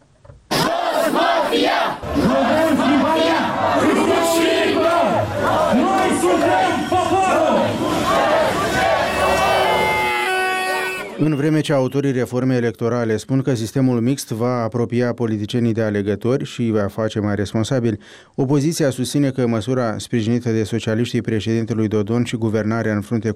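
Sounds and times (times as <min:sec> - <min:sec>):
crowd shouting and chanting at political street demonstration: 0:00.5 - 0:11.5
speech: 0:11.2 - 0:23.3.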